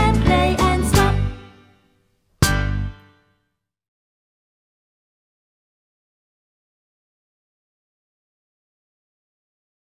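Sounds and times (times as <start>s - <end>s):
children's song about a drum: 0.0s - 1.9s.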